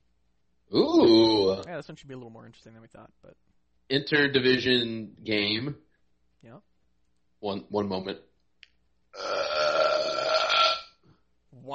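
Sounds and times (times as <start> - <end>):
long burp: 0.7 - 1.6, 9.2 - 11.0
speech: 0.7 - 6.7, 7.4 - 8.3, 9.2 - 9.5.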